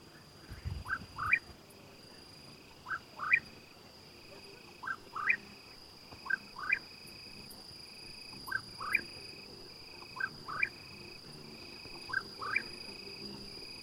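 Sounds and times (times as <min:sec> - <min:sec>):
crickets stridulating at dusk on a rocky crag: 0:00.0 - 0:13.8.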